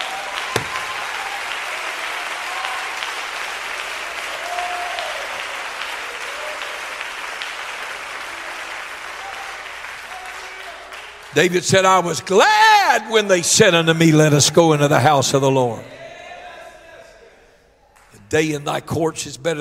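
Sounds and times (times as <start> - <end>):
people clapping hands hard: 0.0 - 11.6
speech: 11.4 - 15.9, 18.3 - 19.5.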